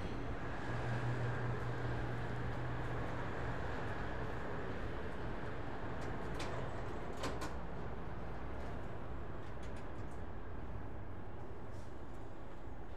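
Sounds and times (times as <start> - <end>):
roadside station ambience in Italy: 0.0 - 12.9.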